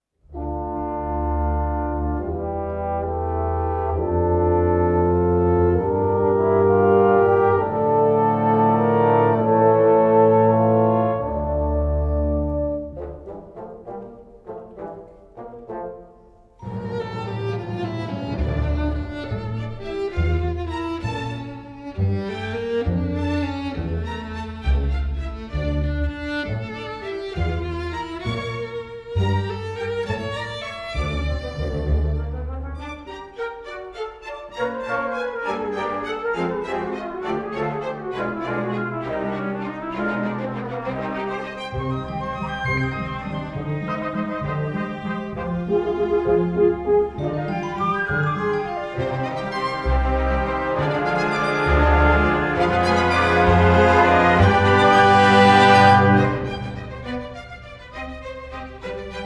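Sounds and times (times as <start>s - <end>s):
trombone and violin concerto: 0.3s - 59.2s.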